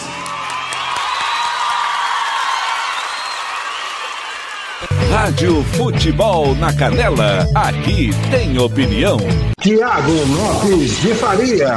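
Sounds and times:
faint whoops: 0.0 - 4.9
audience applause: 0.0 - 5.0
speech: 5.2 - 11.7.

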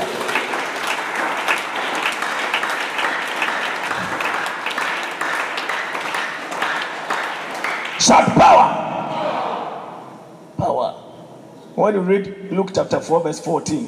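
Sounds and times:
large audience applause: 0.0 - 10.1
speech: 8.0 - 8.7, 11.8 - 13.8.

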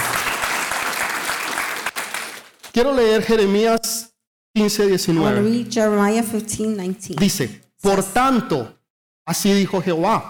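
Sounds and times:
audience applauding: 0.0 - 2.8
speech: 2.8 - 10.2.

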